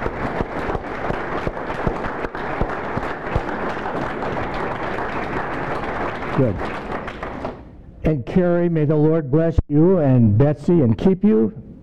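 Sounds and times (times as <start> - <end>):
audience applause: 0.0 - 7.6
speech: 6.4 - 6.8, 8.1 - 11.6.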